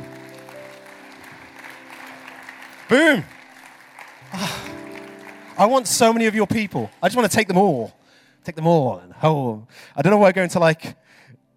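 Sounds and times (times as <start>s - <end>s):
audience round of applause: 0.0s - 7.8s
speech: 2.9s - 3.4s, 5.6s - 11.1s.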